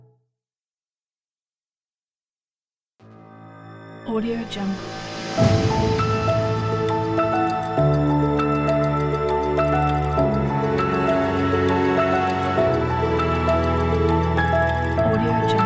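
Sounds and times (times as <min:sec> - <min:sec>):
cinematic inspiring soundscape: 0:03.2 - 0:15.6.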